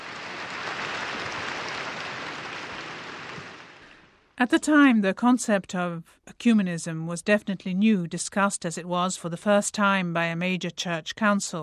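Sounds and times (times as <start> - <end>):
applause: 0.0 - 4.1
speech: 4.4 - 11.6.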